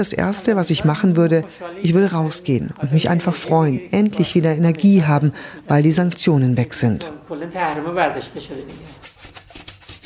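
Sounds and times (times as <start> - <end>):
speech: 0.0 - 9.4
scrubbing an office washbasin: 8.3 - 10.0.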